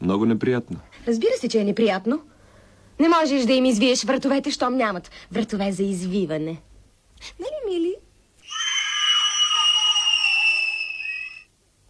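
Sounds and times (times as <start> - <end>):
speech: 0.0 - 2.3, 3.0 - 8.0
children screaming in the distance: 8.4 - 11.5.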